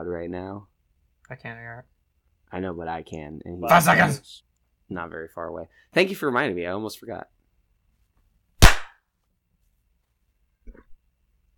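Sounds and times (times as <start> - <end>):
speech: 0.0 - 0.7, 1.3 - 1.9, 2.5 - 7.4
single hand clap: 8.6 - 8.9.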